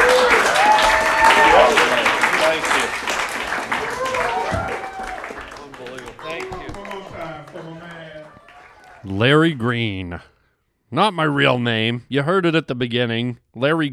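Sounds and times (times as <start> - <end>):
religious group applauding at a live stand-up set: 0.0 - 9.7
people cheering: 0.0 - 10.2
speech: 9.2 - 13.9.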